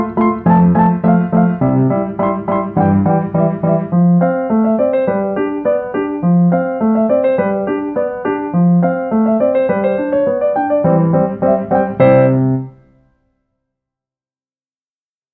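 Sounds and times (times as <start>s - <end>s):
sonatina piece: 0.0s - 13.1s.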